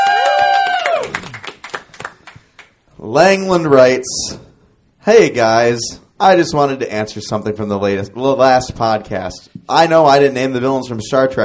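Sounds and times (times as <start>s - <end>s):
audience cheering and clapping: 0.0s - 2.6s
speech: 3.1s - 11.4s.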